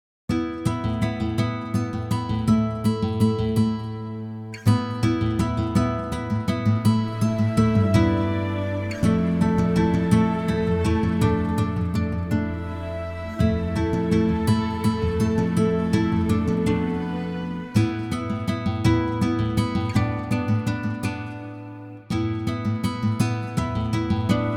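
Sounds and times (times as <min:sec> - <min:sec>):
guitar arpeggio: 0:01.0 - 0:24.5.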